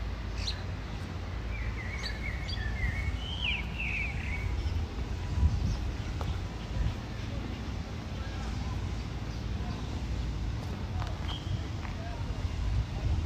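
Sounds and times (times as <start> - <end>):
traffic rumble at Tel Aviv University in Ramat Aviv: 0.0 - 13.2
bird chirping: 0.4 - 4.8
scattered voices: 0.4 - 13.2.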